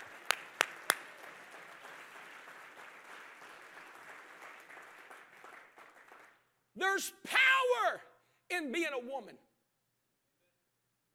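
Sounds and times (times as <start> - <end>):
hand claps: 0.0 - 6.5
speech: 6.8 - 9.5.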